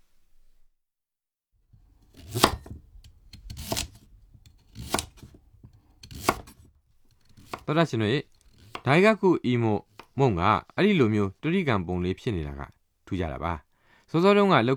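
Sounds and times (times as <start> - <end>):
knife cutting eggplant into 3 cm chunks: 1.8 - 9.2, 9.8 - 10.2
speech: 7.7 - 14.7.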